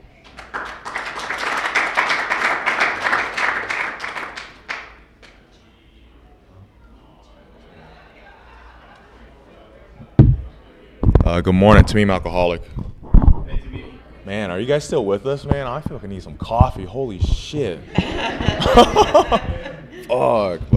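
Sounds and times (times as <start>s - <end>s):
audience applause welcoming a speaker: 0.2s - 5.0s
laughter: 7.7s - 9.4s, 17.8s - 20.3s
loud thump: 10.2s - 12.0s
speech: 11.4s - 12.8s, 14.3s - 20.7s.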